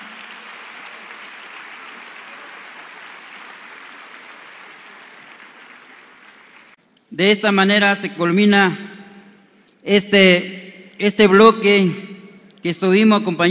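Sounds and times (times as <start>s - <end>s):
audience applause: 0.0s - 6.8s
speech: 7.1s - 9.0s, 9.8s - 13.5s.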